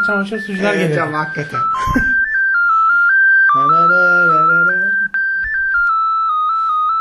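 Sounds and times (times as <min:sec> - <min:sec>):
speech: 0:00.0 - 0:02.1, 0:03.6 - 0:04.1
school-bell-like electronic phone ringtone: 0:00.0 - 0:06.9.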